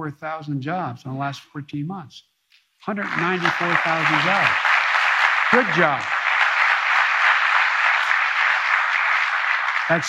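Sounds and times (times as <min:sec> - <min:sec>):
speech: 0:00.0 - 0:04.7, 0:05.5 - 0:06.2, 0:09.9 - 0:10.0
crowd clapping: 0:02.8 - 0:10.0.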